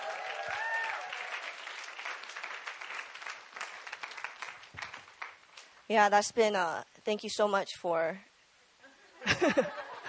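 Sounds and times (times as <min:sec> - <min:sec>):
audience applause for seminar speakers: 0:00.0 - 0:05.4
speech: 0:05.9 - 0:08.3, 0:09.3 - 0:09.8
laughter: 0:09.0 - 0:10.0.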